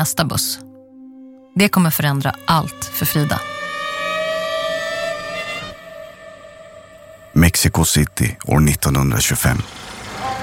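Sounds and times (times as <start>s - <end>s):
speech: 0.0s - 0.7s, 1.6s - 3.6s, 7.6s - 9.9s
chaotic Mexico City traffic noise: 1.5s - 10.4s.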